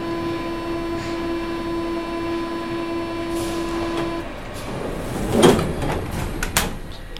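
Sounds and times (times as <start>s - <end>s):
steam train running between two stations: 0.0s - 7.1s
metal clanks: 3.3s - 7.1s.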